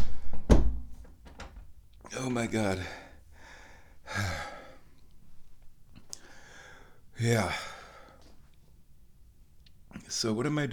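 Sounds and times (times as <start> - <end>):
door opening with heavy thunk: 0.2 - 1.7
speech: 2.2 - 3.0, 7.2 - 7.7, 10.1 - 10.7.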